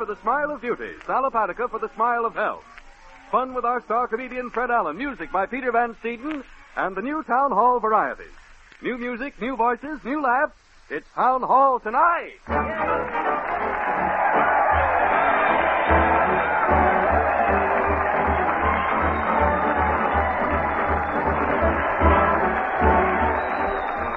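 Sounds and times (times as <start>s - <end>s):
speech: 0.1s - 13.2s
crowd cheering at a parade: 12.5s - 24.1s.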